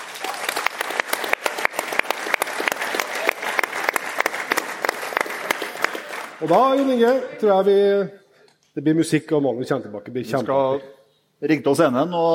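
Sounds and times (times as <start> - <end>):
audience applause: 0.0 - 7.4
speech: 6.4 - 8.2, 8.8 - 12.3.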